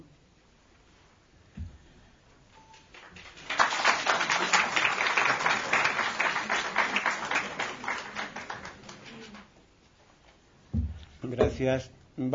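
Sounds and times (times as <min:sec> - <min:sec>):
audience applause: 0:02.9 - 0:09.5
speech: 0:11.6 - 0:12.3.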